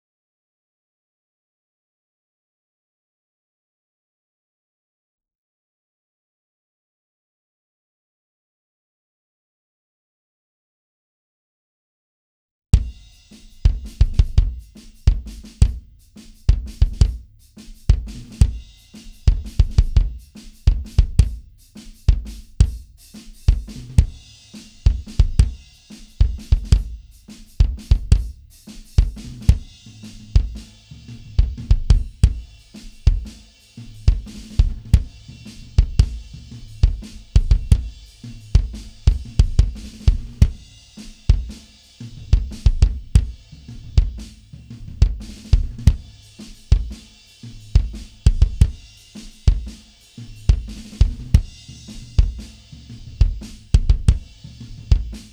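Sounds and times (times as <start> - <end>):
drums: 12.8 - 55.3.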